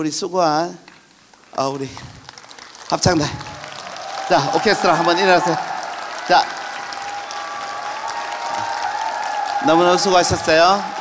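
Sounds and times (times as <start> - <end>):
speech: 0.0 - 0.9, 1.6 - 2.2, 2.9 - 3.5, 4.3 - 5.7, 6.3 - 6.5, 9.6 - 10.9
audience applause: 1.3 - 10.9.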